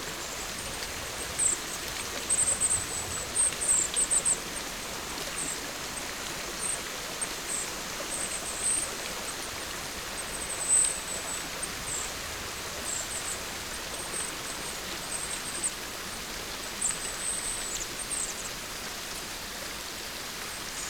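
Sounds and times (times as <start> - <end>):
raindrops in a forest: 0.0 - 20.8.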